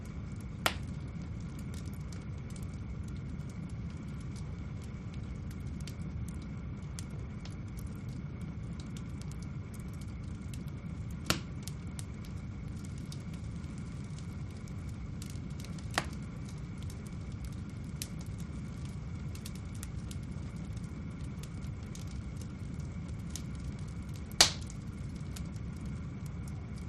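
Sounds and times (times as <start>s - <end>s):
fire medium roar and hiss: 0.0s - 26.8s.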